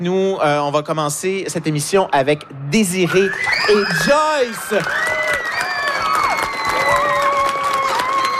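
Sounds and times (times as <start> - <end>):
speech: 0.0 - 5.2
high cheering voices: 3.0 - 8.3
audience applauding loudly for three students who sent in questions: 3.5 - 8.3.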